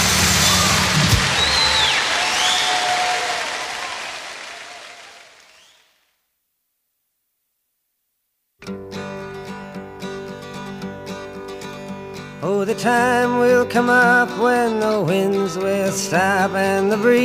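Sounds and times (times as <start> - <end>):
audience applause: 0.0 - 6.0
speech: 12.7 - 17.2.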